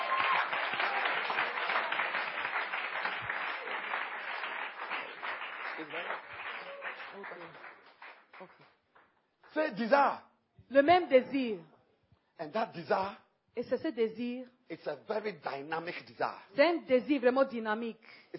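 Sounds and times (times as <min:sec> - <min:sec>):
congregation clapping for Jesus at a bilingual church service: 0:00.0 - 0:09.6
speech: 0:05.8 - 0:06.3, 0:07.2 - 0:07.7, 0:08.4 - 0:08.8, 0:09.5 - 0:11.7, 0:12.4 - 0:18.3.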